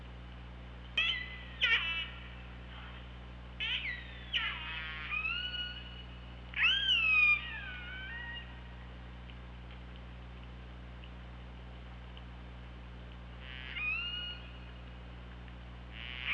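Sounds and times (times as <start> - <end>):
killer whale calling: 3.6 - 8.6, 13.4 - 14.8, 15.9 - 16.3.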